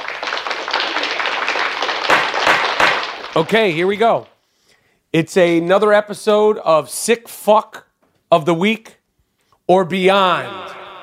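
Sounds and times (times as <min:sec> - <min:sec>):
round of applause: 0:00.0 - 0:04.4
speech: 0:03.4 - 0:04.3, 0:05.1 - 0:09.0, 0:09.7 - 0:10.8.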